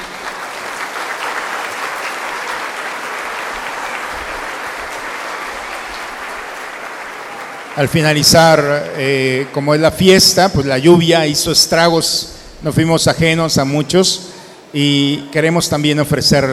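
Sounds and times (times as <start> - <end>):
audience applause for schoolchildren: 0.0 - 9.9
speech: 7.8 - 16.5.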